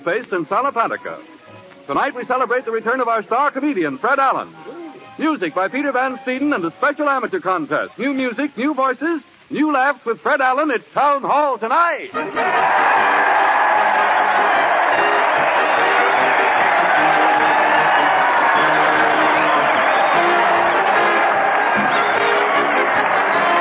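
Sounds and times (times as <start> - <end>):
speech: 0.0 - 13.2
crowd cheering: 12.1 - 23.5.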